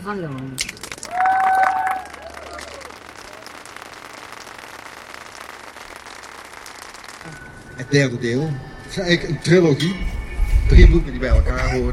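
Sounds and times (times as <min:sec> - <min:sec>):
speech: 0:00.0 - 0:01.2, 0:07.3 - 0:11.9
audience applause: 0:00.8 - 0:07.6.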